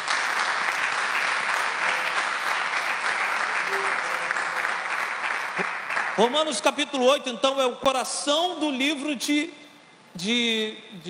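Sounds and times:
audience applauding: 0:00.0 - 0:06.6
speech: 0:06.2 - 0:09.6, 0:10.2 - 0:11.0.

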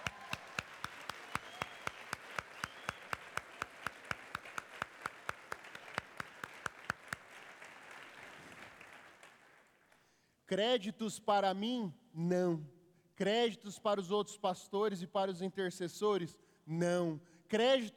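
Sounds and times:
audience applauding: 0:00.0 - 0:10.0
speech: 0:10.5 - 0:17.9.

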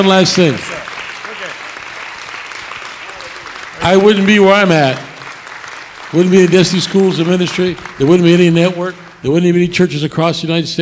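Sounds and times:
speech: 0:00.0 - 0:00.8, 0:03.9 - 0:05.1, 0:06.1 - 0:10.8
audience applause: 0:00.0 - 0:09.6.

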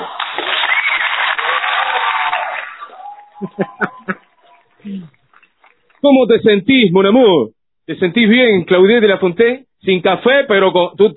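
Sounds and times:
audience applause: 0:00.0 - 0:06.0
laughter: 0:03.0 - 0:05.1
speech: 0:03.4 - 0:03.8, 0:06.0 - 0:11.1.

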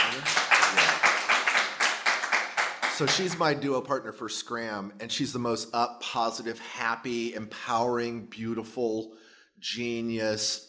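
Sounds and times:
audience applause: 0:00.0 - 0:03.4
speech: 0:03.0 - 0:10.6.

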